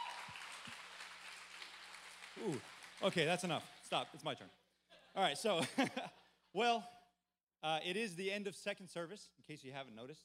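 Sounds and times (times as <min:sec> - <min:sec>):
audience applause: 0:00.0 - 0:04.2
speech: 0:02.4 - 0:04.6, 0:05.2 - 0:07.0, 0:07.6 - 0:10.2
laughter: 0:05.5 - 0:06.3.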